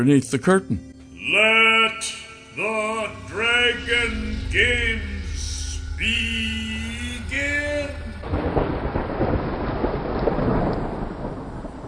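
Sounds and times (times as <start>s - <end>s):
speech: 0.0s - 5.1s
thunder clap: 3.2s - 11.8s.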